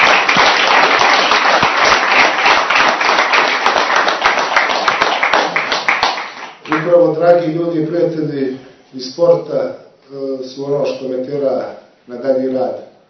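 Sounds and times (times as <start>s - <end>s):
audience applause for sports champions: 0.0s - 6.9s
speech: 7.1s - 12.8s.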